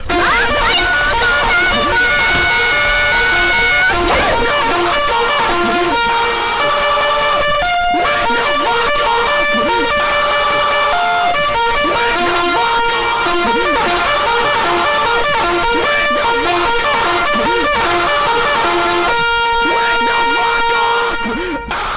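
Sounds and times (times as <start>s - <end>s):
alarm: 0.0s - 21.9s
laughter: 0.0s - 21.9s.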